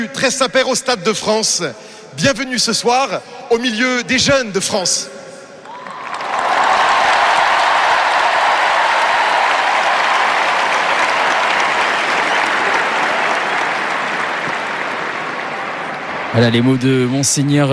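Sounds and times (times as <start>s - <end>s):
speech: 0.0s - 5.2s, 16.4s - 17.7s
crowd applause at the Stade de France: 5.6s - 16.6s
large crowd cheering for the Pope at the Stade de France: 5.6s - 17.7s.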